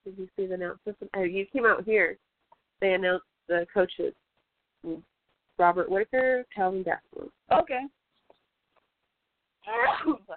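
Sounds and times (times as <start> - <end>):
speech: 0.1 - 4.2, 4.8 - 8.0, 9.6 - 10.3
sneeze: 9.7 - 10.3.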